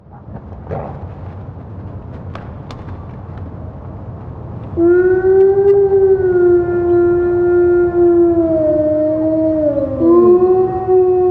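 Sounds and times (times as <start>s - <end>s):
wolf howling: 4.8s - 11.2s.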